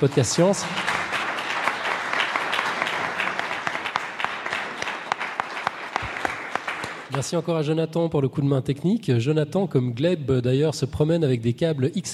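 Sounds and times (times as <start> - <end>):
speech: 0.0 - 1.0, 7.2 - 12.1
audience applause: 0.0 - 7.2.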